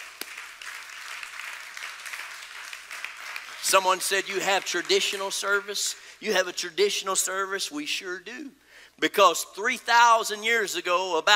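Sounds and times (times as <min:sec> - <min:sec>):
audience hand clapping: 0:00.0 - 0:05.9
speech: 0:03.6 - 0:11.3.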